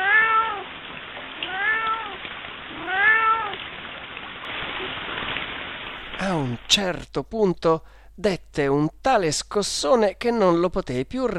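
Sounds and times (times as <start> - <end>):
cat yowling: 0.0 - 0.7, 1.4 - 3.6
speech: 6.7 - 11.3.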